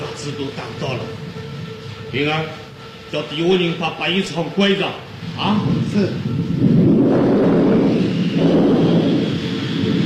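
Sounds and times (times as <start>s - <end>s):
speech: 0.2s - 1.4s, 2.1s - 6.4s
thunder of an approaching storm: 5.3s - 10.0s.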